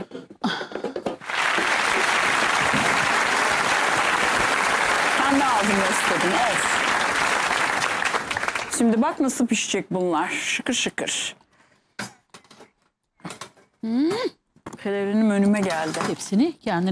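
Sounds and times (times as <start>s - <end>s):
crowd applause: 1.2s - 9.1s
speech: 5.4s - 6.8s, 8.8s - 11.4s, 13.8s - 16.9s.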